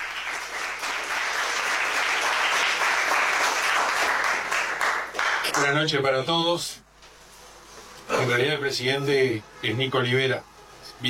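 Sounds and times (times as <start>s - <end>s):
audience applause: 0.0s - 5.6s
speech: 5.6s - 6.8s, 8.3s - 11.0s.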